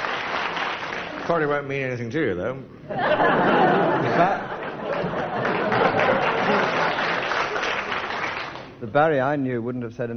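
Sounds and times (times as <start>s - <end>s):
audience applause: 0.0s - 1.6s, 4.1s - 8.8s
speech: 1.3s - 4.4s, 8.8s - 10.1s
laughter: 2.9s - 8.1s.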